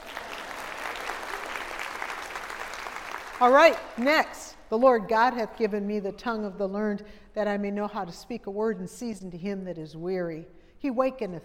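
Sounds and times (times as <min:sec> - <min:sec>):
group of people applauding: 0:00.0 - 0:04.0
speech: 0:03.4 - 0:11.4.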